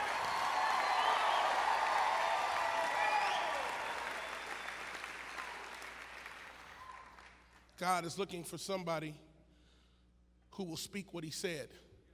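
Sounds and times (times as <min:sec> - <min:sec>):
audience cheering and shouting: 0:00.0 - 0:04.6
audience applause: 0:00.0 - 0:07.6
speech: 0:07.8 - 0:09.3, 0:10.6 - 0:11.9.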